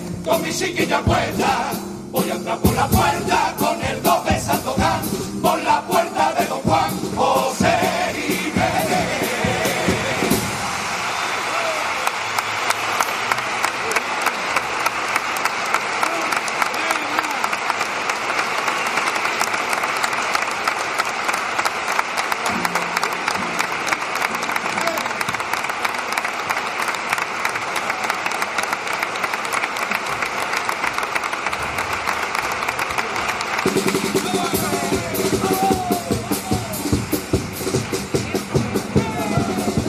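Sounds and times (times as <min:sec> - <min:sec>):
speech: 0:00.3 - 0:05.9
theatre audience applauding: 0:07.2 - 0:39.8
faint crowd murmurs and vocal sounds: 0:09.0 - 0:39.8.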